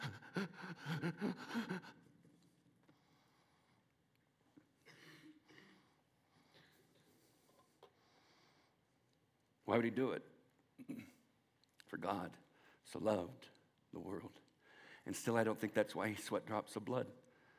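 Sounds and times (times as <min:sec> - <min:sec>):
voice imitating laboured breathing of a crucified man: 0:00.0 - 0:02.0
speech: 0:00.4 - 0:02.0, 0:09.8 - 0:11.1, 0:12.0 - 0:14.4, 0:15.0 - 0:17.2.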